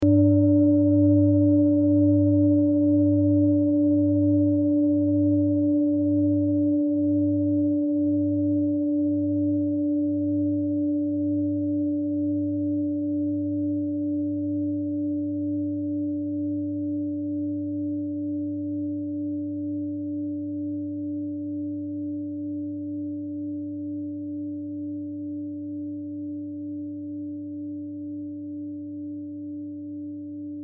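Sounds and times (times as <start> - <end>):
set of singing bowls: 0.0 - 24.1.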